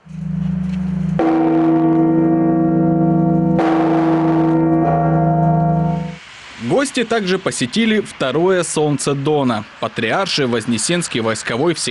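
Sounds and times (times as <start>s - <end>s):
church bells ringing: 0.0s - 6.2s
speech: 6.8s - 11.9s.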